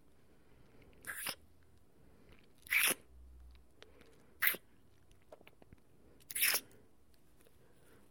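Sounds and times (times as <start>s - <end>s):
wet noises: 2.6s - 3.1s, 6.3s - 6.7s.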